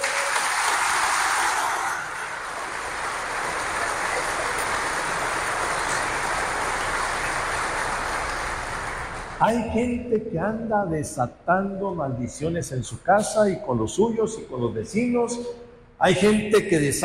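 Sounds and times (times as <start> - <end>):
audience applause: 0.0 - 9.5
speech: 9.4 - 17.0.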